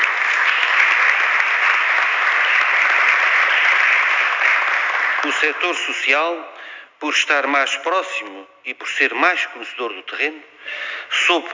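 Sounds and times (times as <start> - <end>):
audience applause: 0.0 - 6.2
speech: 5.4 - 11.5.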